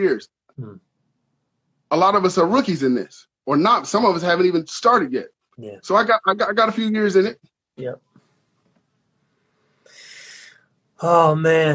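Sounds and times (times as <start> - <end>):
speech: 0.0 - 0.9, 1.9 - 8.1, 11.0 - 11.7
big breath: 9.8 - 10.7.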